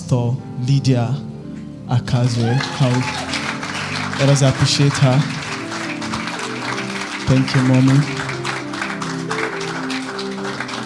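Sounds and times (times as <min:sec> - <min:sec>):
speech: 0:00.1 - 0:01.3, 0:01.9 - 0:03.4, 0:04.2 - 0:05.4, 0:07.3 - 0:08.2
audience clapping: 0:02.2 - 0:10.8.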